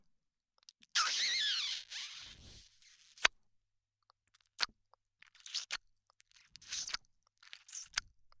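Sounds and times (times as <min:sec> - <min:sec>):
reversed left ear licking: 0:00.9 - 0:03.3, 0:04.3 - 0:08.1.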